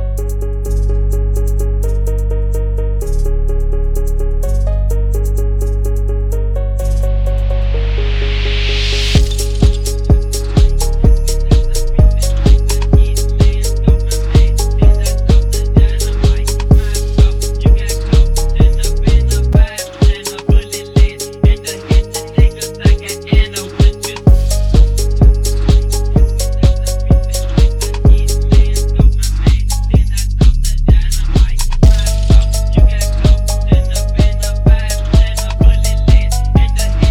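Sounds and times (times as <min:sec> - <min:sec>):
phonk beat: 0:00.2 - 0:37.0.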